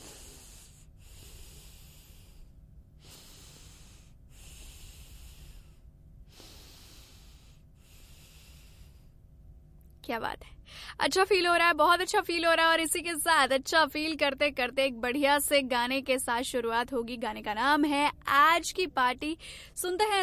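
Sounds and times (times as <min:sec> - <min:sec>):
deep long breaths: 0:00.0 - 0:09.3
speech: 0:10.1 - 0:20.2.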